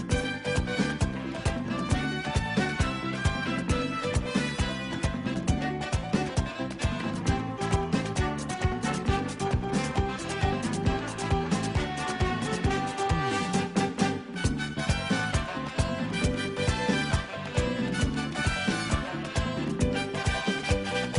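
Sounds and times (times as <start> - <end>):
merengue music: 0.0 - 21.1.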